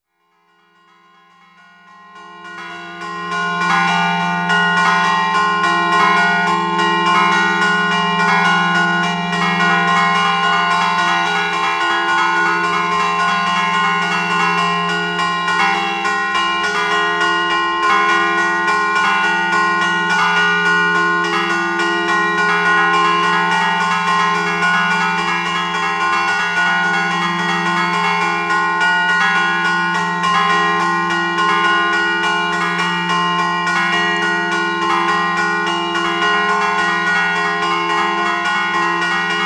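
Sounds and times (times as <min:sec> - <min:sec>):
bells ringing: 0:00.4 - 0:39.4.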